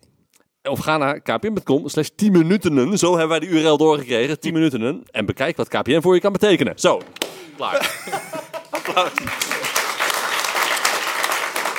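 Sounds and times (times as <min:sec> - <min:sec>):
speech: 0:00.7 - 0:08.4, 0:09.0 - 0:09.5
laughter: 0:07.6 - 0:10.2
crowd applause: 0:08.5 - 0:11.7.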